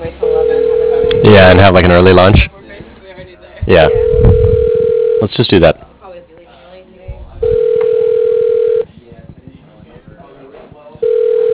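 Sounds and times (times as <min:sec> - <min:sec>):
faint murmuring voices: 0:00.0 - 0:11.5
telephone ringing with steady electronic tone: 0:00.1 - 0:02.2, 0:03.8 - 0:05.3, 0:07.4 - 0:08.9, 0:11.0 - 0:11.5
speech: 0:01.2 - 0:02.6, 0:03.7 - 0:04.4, 0:05.2 - 0:05.9.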